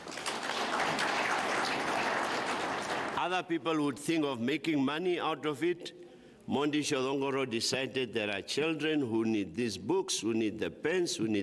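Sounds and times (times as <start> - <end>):
crowd applauding: 0.0 - 3.2
speech: 3.3 - 11.4.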